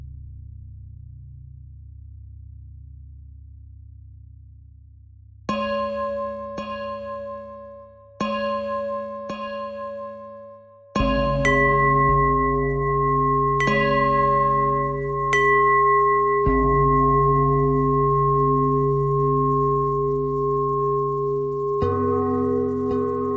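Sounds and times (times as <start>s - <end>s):
pentatonic bell melody: 5.5s - 23.3s.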